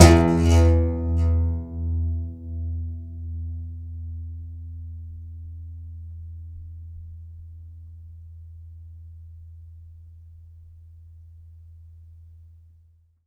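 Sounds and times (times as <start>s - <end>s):
contrabass balalaika plucked strings: 0.0s - 4.2s.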